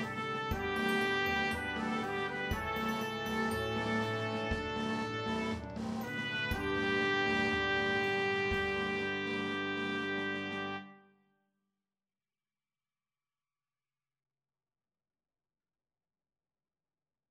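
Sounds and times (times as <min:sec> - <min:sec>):
trumpet playing C: 0:00.0 - 0:11.3.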